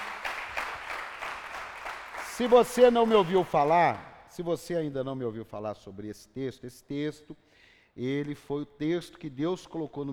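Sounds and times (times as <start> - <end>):
crowd applause: 0.0 - 3.5
speech: 2.4 - 10.1.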